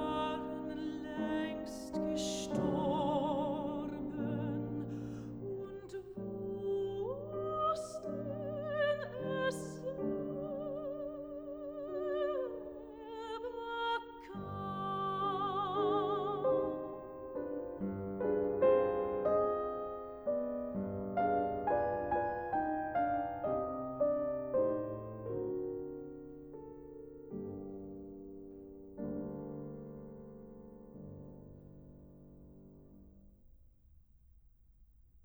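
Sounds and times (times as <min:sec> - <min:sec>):
person singing: 0:00.0 - 0:17.1
piano: 0:00.0 - 0:34.0.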